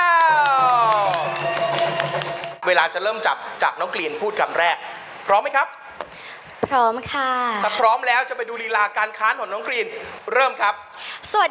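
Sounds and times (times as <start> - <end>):
audience applause welcoming a speaker: 0.0 - 2.6
speech: 2.7 - 6.1, 6.7 - 11.4.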